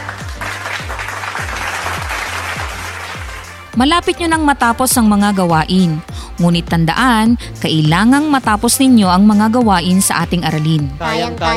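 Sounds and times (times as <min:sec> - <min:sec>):
applause from students clapping for themselves during a lesson: 0:00.0 - 0:03.8
speech: 0:03.8 - 0:11.5.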